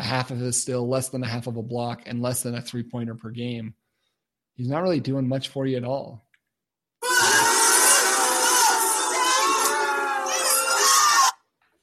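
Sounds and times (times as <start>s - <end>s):
speech: 0.1s - 3.8s, 4.6s - 6.2s
crowd booing sound effect: 7.0s - 11.4s.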